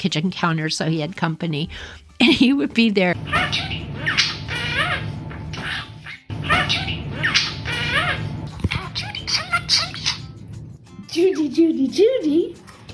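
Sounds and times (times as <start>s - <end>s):
speech: 0.0s - 4.3s, 6.6s - 8.0s, 11.1s - 12.6s
parakeet chattering and mumbling: 3.2s - 10.6s.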